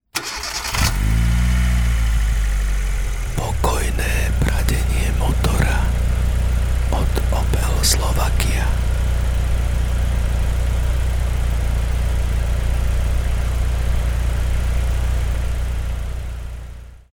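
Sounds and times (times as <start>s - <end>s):
Opel engine idling smoothly: 0.1s - 17.1s.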